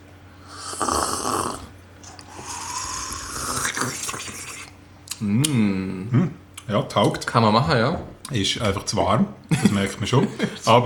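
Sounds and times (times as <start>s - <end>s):
slurping red wine from a glass: 0.7s - 4.8s
speech: 5.2s - 6.2s, 6.8s - 10.8s.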